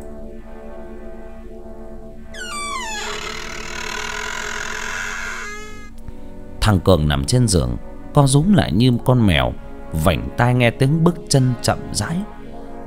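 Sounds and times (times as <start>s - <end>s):
door creaking open: 2.4s - 6.0s
speech: 6.6s - 12.4s.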